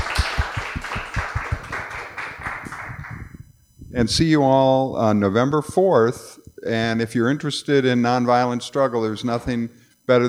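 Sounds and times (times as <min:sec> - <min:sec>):
audience applause: 0:00.0 - 0:03.2
speech: 0:03.9 - 0:10.2.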